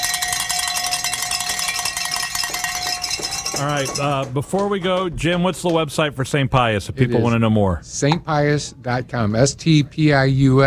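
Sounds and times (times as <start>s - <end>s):
bells ringing: 0.0s - 4.5s
speech: 3.6s - 10.6s.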